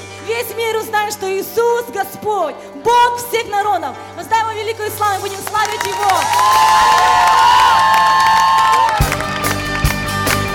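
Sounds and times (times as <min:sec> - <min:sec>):
speech: 0:00.5 - 0:08.4
audience cheering and applauding: 0:05.4 - 0:10.5.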